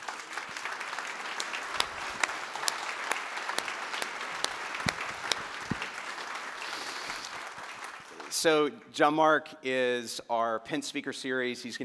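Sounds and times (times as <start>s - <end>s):
audience applause welcoming guest speaker John Mark Comer: 0.0s - 8.5s
speech: 8.4s - 11.8s.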